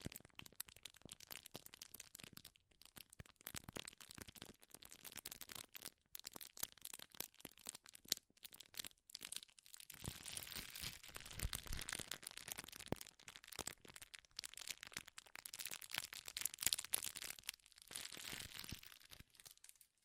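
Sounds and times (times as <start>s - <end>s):
crinkles of something being crumpled: 0.0s - 20.0s.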